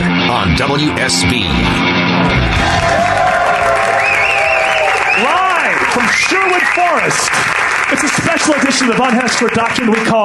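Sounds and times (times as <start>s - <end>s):
speech: 0.5s - 3.3s, 6.0s - 10.2s
studio audience applauding and cheering with whoops: 2.3s - 10.2s.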